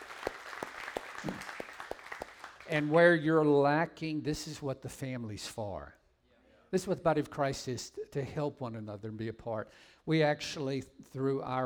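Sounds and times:
audience applause: 0.0s - 2.9s
speech: 2.7s - 6.0s, 6.7s - 11.6s.

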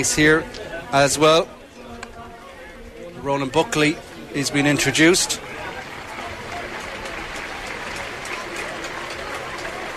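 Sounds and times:
speech: 0.0s - 1.6s, 3.2s - 5.4s
stadium crowd applause: 4.9s - 9.9s.

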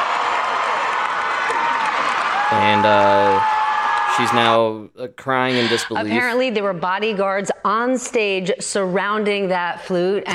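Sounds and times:
concert crowd cheering and shouting: 0.0s - 4.4s
speech: 2.5s - 3.6s, 4.2s - 10.3s.

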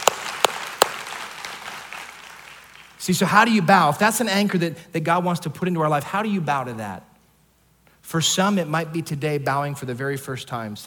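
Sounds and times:
audience clapping: 0.0s - 3.0s
speech: 3.1s - 7.1s, 8.1s - 10.8s.

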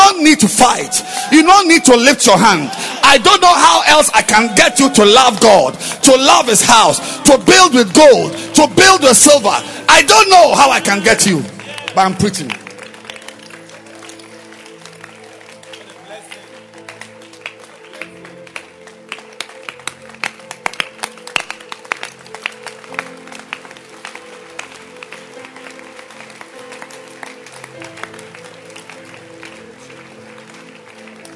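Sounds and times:
audience clapping: 0.0s - 31.3s
speech: 0.3s - 12.6s.

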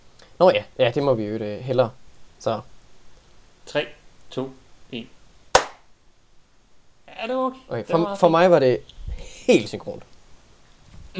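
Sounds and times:
speech: 0.4s - 2.7s, 3.7s - 5.2s, 7.2s - 10.1s
single hand clap for audio sync: 5.5s - 5.9s.

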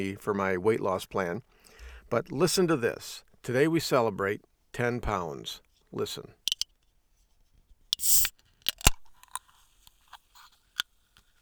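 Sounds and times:
speech: 0.0s - 6.4s, 8.0s - 8.3s
soda can hissing and fizzing: 8.0s - 8.3s
metallic clicks: 8.0s - 9.4s
soda can snapping open: 8.0s - 11.4s.

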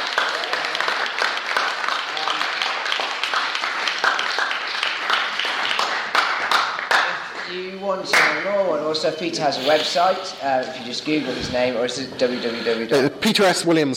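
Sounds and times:
audience round of applause: 0.0s - 7.7s
speech: 7.9s - 13.9s.

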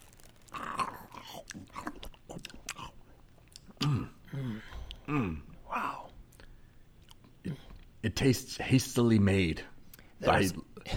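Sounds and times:
biting into fast-food meat: 0.0s - 4.1s
chewing fast-food meat: 0.0s - 8.0s
speech: 8.1s - 10.7s.

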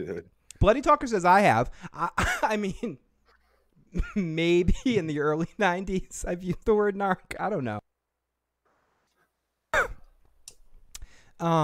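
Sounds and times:
speech: 0.0s - 3.0s, 3.9s - 7.9s, 11.4s - 11.6s
cough: 2.2s - 2.5s, 9.7s - 10.2s.

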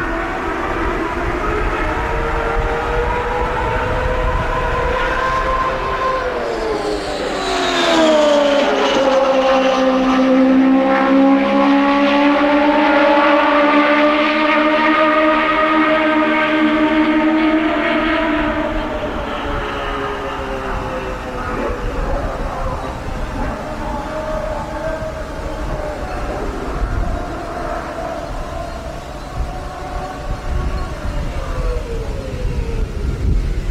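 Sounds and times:
turbocharged 2.65-liter IndyCar V8 engine at Phoenix International Raceway: 0.0s - 33.6s.

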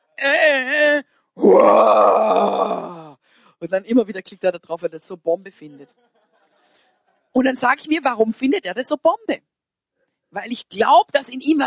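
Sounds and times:
speech: 0.2s - 0.7s, 1.4s - 2.8s, 3.6s - 6.2s, 7.4s - 9.5s, 10.3s - 11.6s
scream at the start of a song: 1.4s - 3.2s.

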